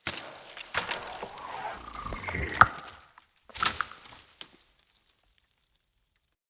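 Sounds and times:
acorn falling from a tree: 0:00.1 - 0:04.4.

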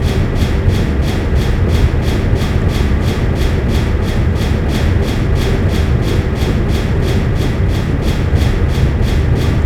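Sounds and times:
large pipe spinning: 0:00.0 - 0:09.6.

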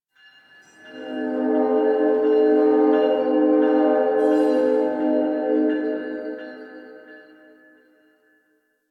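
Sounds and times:
distant train: 0:00.8 - 0:07.8.

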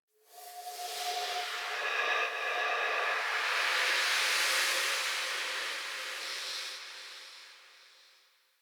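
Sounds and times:
ambience: 0:00.4 - 0:06.1.

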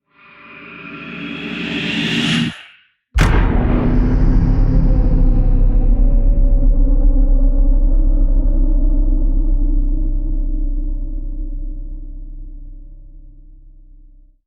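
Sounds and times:
boom: 0:03.2 - 0:12.1.

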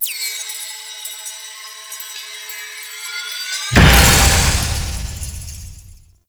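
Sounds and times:
despawn sound effect: 0:03.7 - 0:06.0.

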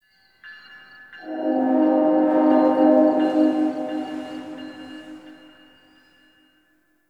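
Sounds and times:
distant train: 0:01.2 - 0:05.7.

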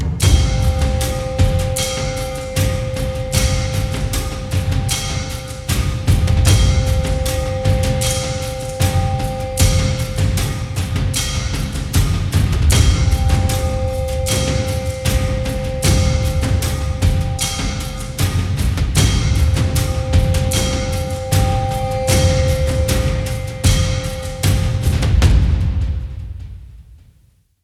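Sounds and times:
night ambience: 0:00.2 - 0:26.8.

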